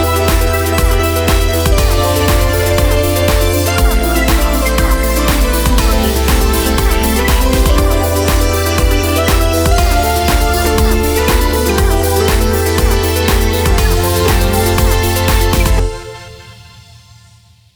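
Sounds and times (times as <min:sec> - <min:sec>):
EDM melody: 0:00.0 - 0:16.9.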